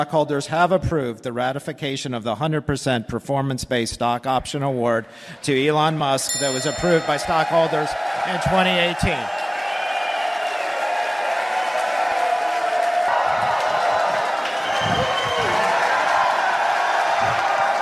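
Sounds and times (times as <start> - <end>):
speech: 0.0 - 9.4
large crowd of stockholders cheering: 5.2 - 17.8
continuous applause: 6.9 - 17.8
whoops: 7.7 - 17.8.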